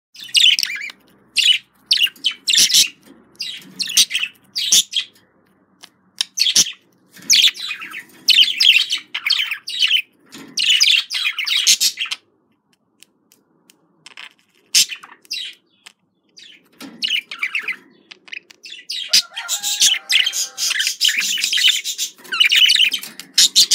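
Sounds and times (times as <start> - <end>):
budgerigar chirping: 0.2 - 5.1, 6.2 - 12.3, 16.4 - 23.7.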